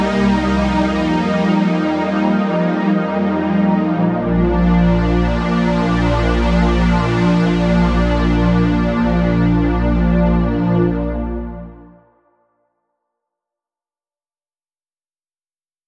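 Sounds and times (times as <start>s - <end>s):
synth pad: 0.0s - 12.0s.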